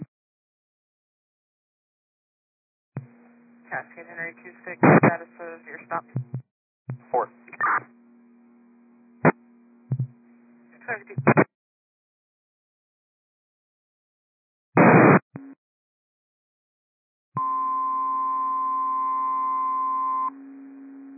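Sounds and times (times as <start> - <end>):
radio static bursts: 3.7 - 6.4, 7.0 - 7.9, 10.9 - 11.5, 14.8 - 15.3
fire dispatch cancellation tones over a radio: 17.4 - 20.3.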